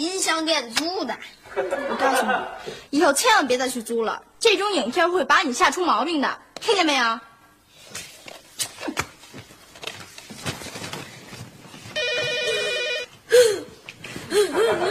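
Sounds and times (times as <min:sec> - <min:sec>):
speech: 0:00.0 - 0:07.3
laughter: 0:01.5 - 0:02.7, 0:14.3 - 0:14.8
shuffling and footstep-like knocks: 0:07.7 - 0:14.3
telephone ringing: 0:12.0 - 0:13.2
sharp high vocal gasps or cries: 0:13.3 - 0:14.8.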